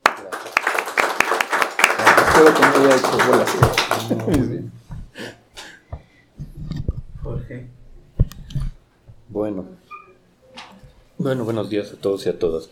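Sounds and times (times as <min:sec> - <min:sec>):
audience applause: 0:00.0 - 0:04.4
speech: 0:02.4 - 0:04.8, 0:07.5 - 0:07.8, 0:09.3 - 0:09.8, 0:11.2 - 0:12.6.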